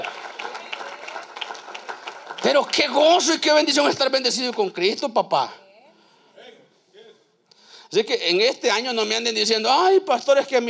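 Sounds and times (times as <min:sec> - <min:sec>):
audience applauding: 0:00.0 - 0:04.8
speech: 0:02.4 - 0:05.6, 0:07.9 - 0:10.6.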